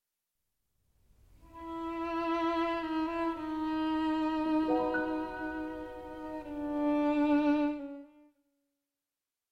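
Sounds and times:
violin and piano sonata in E minor: 0:01.4 - 0:08.2.

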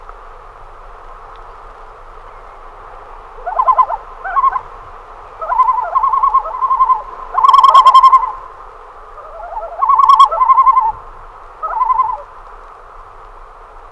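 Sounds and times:
common loon calling with whistles and tremolo: 0:03.4 - 0:04.7, 0:05.4 - 0:11.0, 0:11.6 - 0:12.3.

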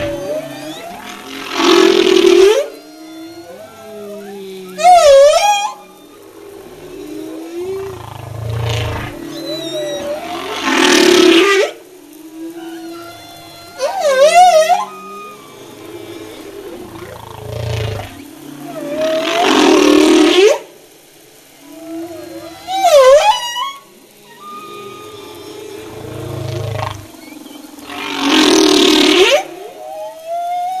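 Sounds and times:
humpback whale: 0:00.0 - 0:30.7.

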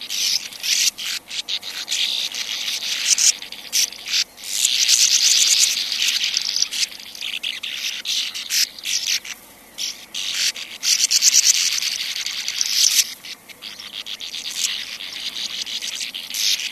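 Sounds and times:
sand martin uttering rough buzzy twittering calls: 0:00.0 - 0:16.7.

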